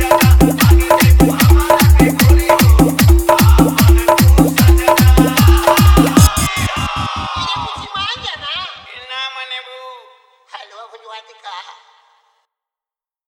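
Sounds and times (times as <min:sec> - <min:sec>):
hard bass music mix: 0:00.0 - 0:08.8.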